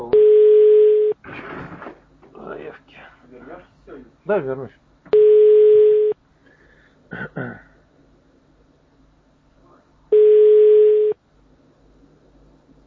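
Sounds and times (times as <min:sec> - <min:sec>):
telephone ringback tone: 0:00.2 - 0:01.2, 0:05.1 - 0:06.2, 0:10.1 - 0:11.2
speech: 0:04.3 - 0:04.8.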